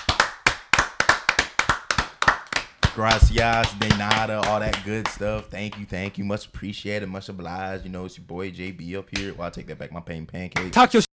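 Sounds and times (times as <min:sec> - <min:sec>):
crisp sharp hand claps: 0:00.0 - 0:06.2
speech: 0:03.0 - 0:11.1.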